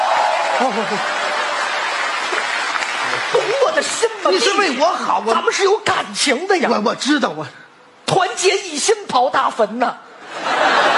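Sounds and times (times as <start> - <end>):
audience applauding a stage act: 0.0 - 4.7
speech: 0.6 - 1.2, 3.1 - 10.8
laughter: 0.6 - 1.3, 10.2 - 10.9.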